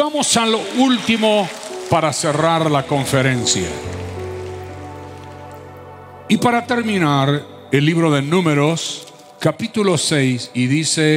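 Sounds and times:
speech: 0:00.0 - 0:04.2, 0:06.3 - 0:11.1
audience applause: 0:00.0 - 0:05.8.

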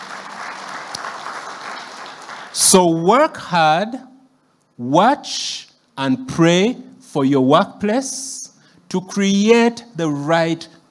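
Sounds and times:
audience clapping: 0:00.0 - 0:03.0
speech: 0:02.6 - 0:04.1, 0:04.8 - 0:10.8.

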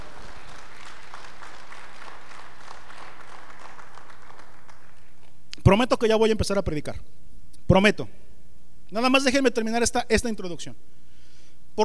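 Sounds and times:
audience clapping loudly: 0:00.0 - 0:05.4
speech: 0:05.7 - 0:08.2, 0:08.9 - 0:11.0.

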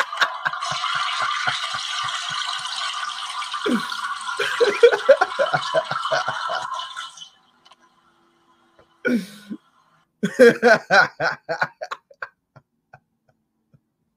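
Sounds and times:
laughter: 0:00.0 - 0:02.8, 0:03.7 - 0:06.8, 0:10.2 - 0:12.3
toilet flushing: 0:00.0 - 0:09.1.

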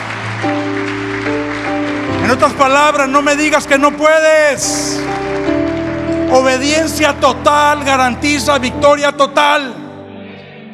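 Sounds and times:
audience applause: 0:00.0 - 0:08.6
speech: 0:02.3 - 0:05.2, 0:06.3 - 0:09.8.

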